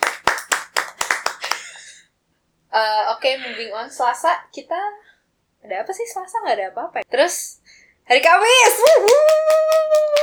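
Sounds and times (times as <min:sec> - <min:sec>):
hand claps: 0:00.0 - 0:01.9, 0:08.2 - 0:10.2
speech: 0:02.8 - 0:05.0, 0:05.6 - 0:10.2.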